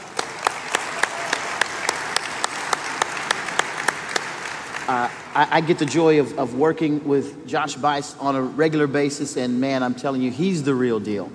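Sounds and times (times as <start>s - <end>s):
audience applause: 0.0s - 5.9s
speech: 4.9s - 11.3s.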